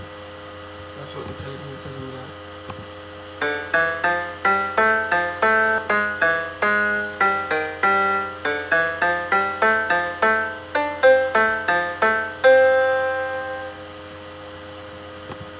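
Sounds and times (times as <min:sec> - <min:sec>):
Mac keyboard piano: 0:03.3 - 0:14.4.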